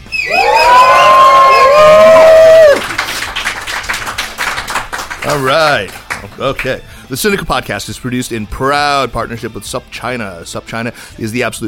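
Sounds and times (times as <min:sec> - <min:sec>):
live crowd roaring and yelling: 0:00.1 - 0:03.0
scattered cheering and clapping: 0:00.1 - 0:06.8
speech: 0:05.4 - 0:11.6.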